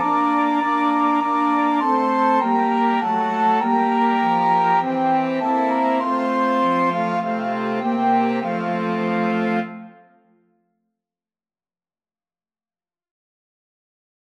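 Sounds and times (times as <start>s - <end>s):
flexible mixed ensemble of 4 players: 0.0s - 10.0s.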